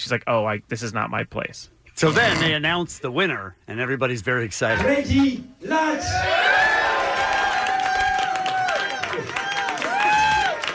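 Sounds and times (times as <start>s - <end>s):
speech: 0.0s - 6.6s
audience applauding: 6.5s - 10.7s.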